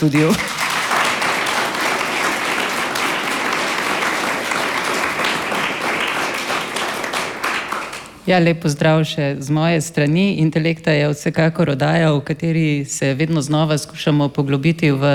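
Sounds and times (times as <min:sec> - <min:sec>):
speech: 0:00.0 - 0:00.5, 0:08.3 - 0:15.1
audience applause: 0:00.0 - 0:08.2.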